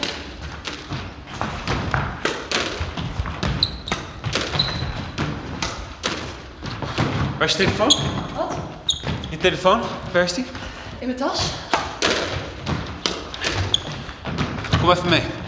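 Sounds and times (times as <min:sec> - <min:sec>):
squash ball thudding against wall: 0:00.0 - 0:10.0, 0:11.4 - 0:15.4
shoes squeaking on a squash court: 0:00.0 - 0:10.4, 0:11.4 - 0:15.4
speech: 0:07.4 - 0:08.6, 0:09.4 - 0:11.7, 0:14.8 - 0:15.4.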